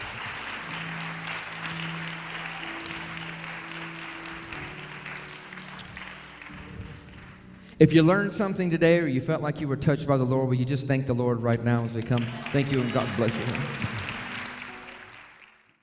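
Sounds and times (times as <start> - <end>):
audience clapping hands in praise: 0.0 - 7.7, 12.0 - 15.8
speech: 7.8 - 13.9.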